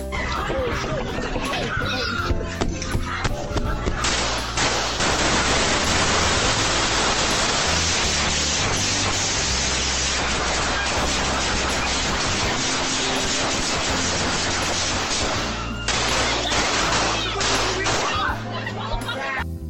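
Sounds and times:
laughter: 0:00.1 - 0:06.3, 0:09.7 - 0:19.5
video game gunfire in a Philadelphia street scene: 0:04.1 - 0:18.1.

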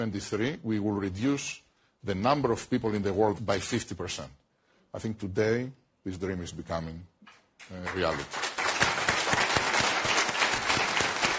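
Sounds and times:
speech: 0:00.0 - 0:08.4
audience applause: 0:07.9 - 0:11.3.

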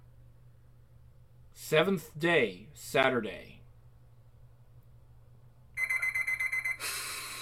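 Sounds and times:
speech: 0:01.7 - 0:03.6
alarm clock ringing with shrill pulsing electronic beep: 0:05.8 - 0:07.0.

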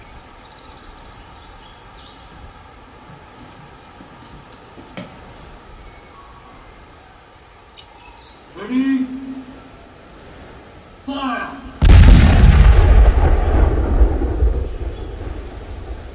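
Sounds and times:
voices: 0:06.1 - 0:10.4, 0:11.0 - 0:11.8
gunpowder charge fired by pulling a cable: 0:11.8 - 0:16.1.

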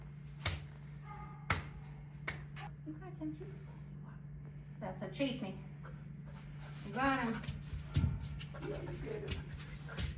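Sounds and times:
hand slapping the ground: 0:00.4 - 0:00.7, 0:01.5 - 0:02.7
speech: 0:02.9 - 0:03.9, 0:04.8 - 0:06.0, 0:06.9 - 0:07.6, 0:08.6 - 0:10.1.

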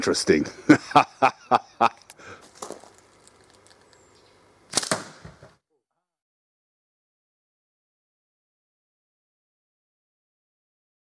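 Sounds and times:
laughter: 0:00.5 - 0:02.1
sharp cracks of steel ball firing: 0:01.9 - 0:04.1, 0:04.7 - 0:05.5
clicks and rattles: 0:02.0 - 0:04.0
steel ball impact into plastic bottle: 0:02.5 - 0:03.7, 0:04.7 - 0:05.6.

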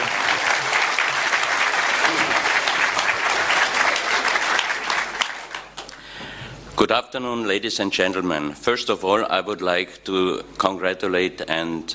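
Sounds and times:
conference audience applause welcoming a guest speaker: 0:00.0 - 0:06.1
speech: 0:06.8 - 0:11.9.

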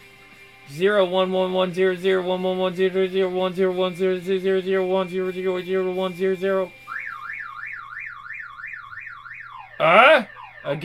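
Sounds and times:
speech: 0:00.7 - 0:06.8, 0:09.8 - 0:10.8
car alarm going off: 0:05.1 - 0:10.8.

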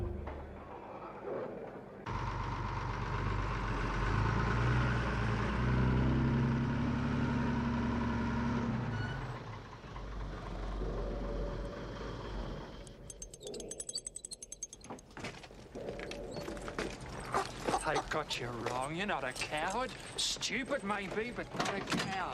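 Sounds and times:
tanker truck engine rumbling: 0:01.8 - 0:22.3
speech: 0:18.2 - 0:22.3.

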